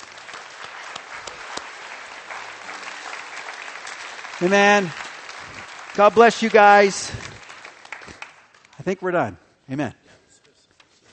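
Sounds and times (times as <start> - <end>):
audience clapping: 0.0 - 9.3
speech: 4.4 - 5.0, 6.0 - 7.3, 8.8 - 10.0.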